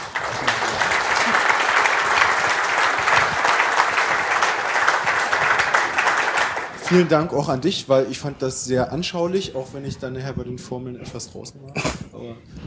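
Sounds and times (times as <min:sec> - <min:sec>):
audience applause: 0:00.0 - 0:07.4
speech: 0:06.9 - 0:12.6.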